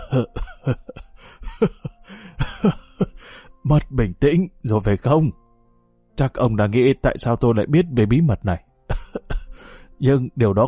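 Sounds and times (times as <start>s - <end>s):
man coughing harshly while being choked: 0.0s - 3.2s, 8.9s - 9.5s
speech: 0.1s - 1.9s, 3.7s - 5.4s, 6.2s - 9.4s, 10.0s - 10.6s.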